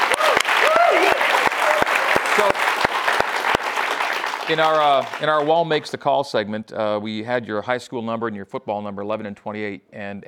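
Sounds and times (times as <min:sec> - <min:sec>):
sharp claps: 0:00.0 - 0:05.9
audience applause after a question session with a BYU football player: 0:00.0 - 0:06.0
speech: 0:02.4 - 0:02.7, 0:04.5 - 0:10.2.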